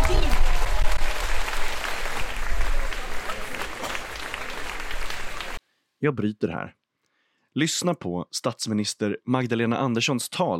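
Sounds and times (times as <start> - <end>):
faint cheers: 0.0 - 5.6
large outdoor crowd applauding a speech: 0.0 - 5.6
speech: 6.0 - 6.8, 7.6 - 10.5.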